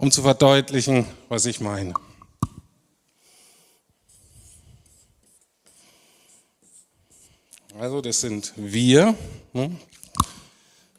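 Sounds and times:
speech: 0.0s - 2.1s, 7.8s - 10.4s
pen scratching out a simple sketch: 4.1s - 7.4s.

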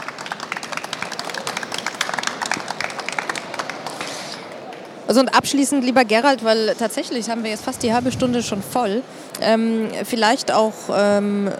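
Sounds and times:
audience applause: 0.0s - 5.1s
speech: 5.1s - 11.5s.

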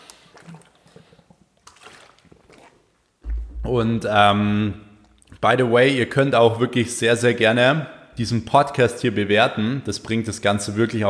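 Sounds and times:
person sipping water: 0.0s - 3.1s
bump: 3.2s - 4.9s
speech: 3.7s - 4.8s, 5.4s - 11.0s.

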